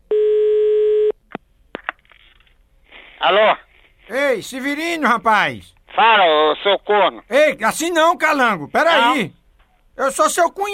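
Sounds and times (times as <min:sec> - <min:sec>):
telephone ring tone as a call is placed: 0:00.1 - 0:01.1
speech: 0:03.2 - 0:09.4, 0:10.0 - 0:10.7.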